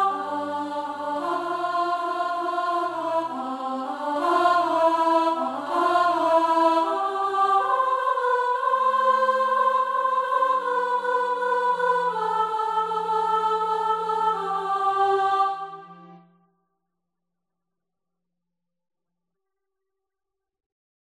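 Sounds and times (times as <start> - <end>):
song with chorus and verses: 0.0 - 16.3.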